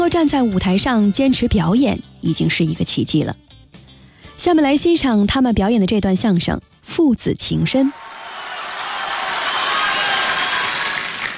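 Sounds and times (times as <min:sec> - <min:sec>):
speech: 0:00.0 - 0:03.4, 0:04.4 - 0:08.0
audience applause after a comic crosstalk stage performance: 0:07.9 - 0:11.3.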